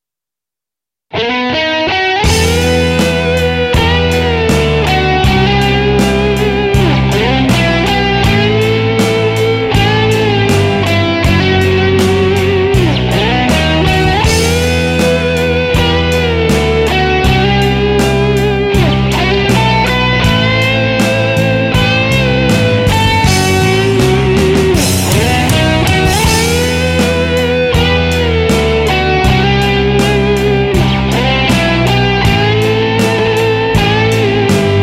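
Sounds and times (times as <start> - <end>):
slow minor guitar solo: 1.1 - 34.8.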